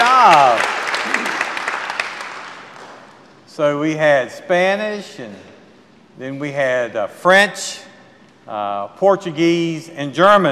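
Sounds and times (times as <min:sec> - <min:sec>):
audience applause: 0:00.0 - 0:03.1
speech: 0:03.6 - 0:05.5, 0:06.2 - 0:07.9, 0:08.5 - 0:10.5.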